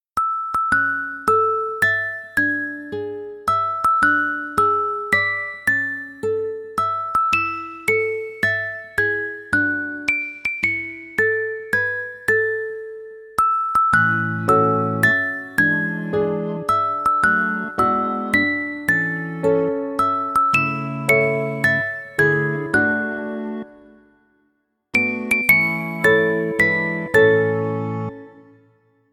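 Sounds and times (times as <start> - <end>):
lullaby: 0.2 - 29.1.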